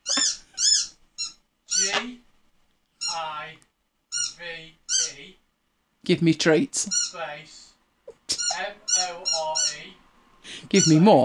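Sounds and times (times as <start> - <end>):
chicken squawking: 0.0 - 2.2, 4.1 - 5.2, 8.1 - 9.9, 10.6 - 11.0
speech: 6.1 - 7.6, 10.7 - 11.2.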